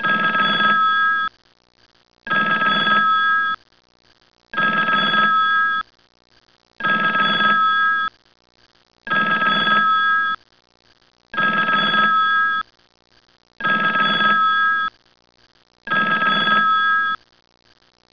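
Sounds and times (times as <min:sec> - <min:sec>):
telephone: 0:00.0 - 0:01.3, 0:02.3 - 0:03.6, 0:04.6 - 0:05.8, 0:06.8 - 0:08.1, 0:09.1 - 0:10.4, 0:11.4 - 0:12.6, 0:13.6 - 0:14.9, 0:15.9 - 0:17.2.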